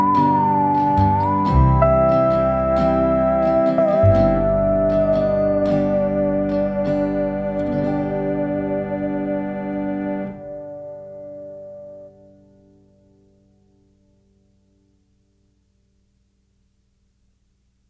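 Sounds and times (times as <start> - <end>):
dan bau playing a folk song: 0.0 - 12.6.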